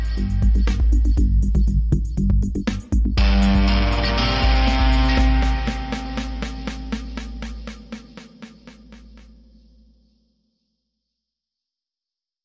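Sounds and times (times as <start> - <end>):
highway guitar: 0.0 - 8.7.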